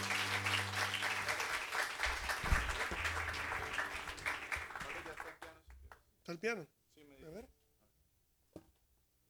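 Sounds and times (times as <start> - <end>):
audience applause: 0.0 - 5.6
speech: 6.3 - 6.8.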